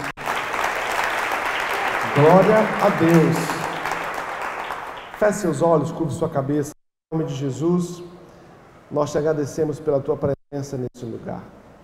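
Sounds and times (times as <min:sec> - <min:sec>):
audience applause: 0:00.0 - 0:05.2
speech: 0:02.2 - 0:03.5, 0:05.2 - 0:08.1, 0:08.9 - 0:11.6.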